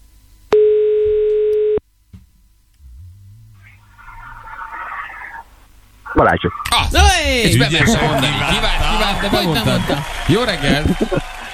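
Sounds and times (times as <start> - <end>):
low hum and soft hiss: 0.0 - 11.5
telephone tone on a call to a listener at a Hungarian FM radio station: 0.6 - 1.8
laughter: 6.1 - 11.5
speech: 6.3 - 11.4.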